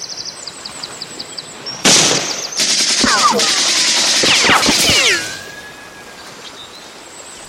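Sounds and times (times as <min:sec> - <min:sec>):
machine-gun and rifle fire in a war film battle scene: 0:01.8 - 0:05.3
high whistling sweeps in a war film battle scene: 0:04.2 - 0:06.6.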